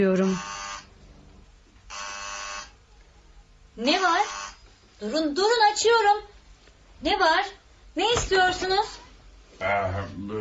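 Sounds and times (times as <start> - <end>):
speech: 0.0 - 0.6, 5.0 - 6.3, 7.0 - 9.0, 9.6 - 10.3
electric doorbell buzzer at front door: 0.2 - 0.9, 1.9 - 2.8, 4.0 - 4.7.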